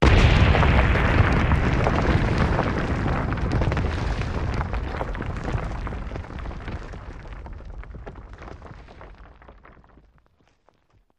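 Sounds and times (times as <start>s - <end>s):
explosion of wood and brick buildings: 0.0s - 9.6s.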